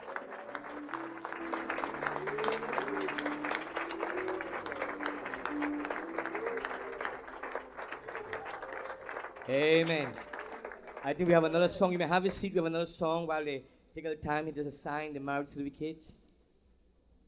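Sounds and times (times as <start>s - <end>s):
audience clapping: 0.0s - 12.8s
speech: 9.5s - 10.3s, 11.0s - 16.2s.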